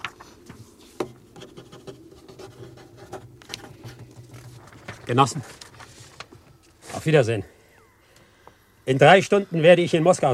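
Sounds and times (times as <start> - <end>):
pen scratching on paper writing a resolution: 1.4 - 3.3
speech: 5.1 - 5.6, 7.0 - 7.5, 8.9 - 10.3.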